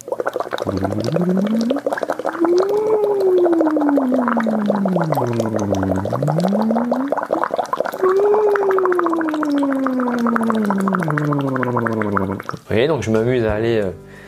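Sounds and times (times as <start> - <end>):
water bubbling through a straw: 0.0 - 12.8
speech: 0.6 - 1.8, 13.0 - 14.0
voice humming a siren through a straw into water: 0.6 - 1.8, 2.4 - 7.1, 8.0 - 12.2.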